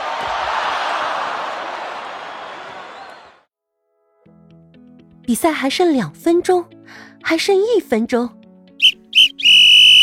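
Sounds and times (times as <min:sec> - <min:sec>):
speech: 0:05.3 - 0:08.4
referee's whistle blasts: 0:08.8 - 0:10.0.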